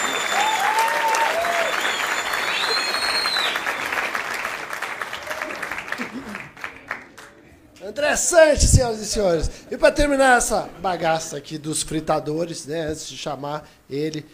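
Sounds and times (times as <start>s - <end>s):
whistles and cheers: 0.0s - 4.2s, 5.0s - 5.8s
crowd applause: 0.0s - 7.5s
speech: 8.1s - 14.3s.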